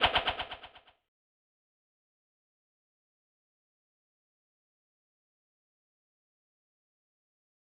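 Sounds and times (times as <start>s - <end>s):
echoing swish: 0.0s - 0.8s.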